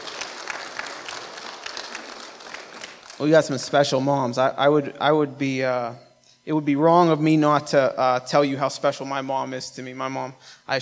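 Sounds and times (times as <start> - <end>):
audience clapping for mothers: 0.0 - 3.7
speech: 3.2 - 10.7.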